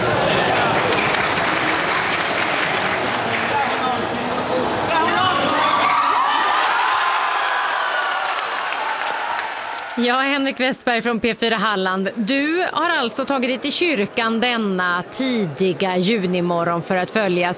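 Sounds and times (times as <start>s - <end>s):
loud continuous clapping: 0.0s - 3.8s, 6.4s - 10.0s
crowd cheering a World Cup goal in Harplinge church: 0.0s - 10.6s
speech: 10.0s - 17.5s.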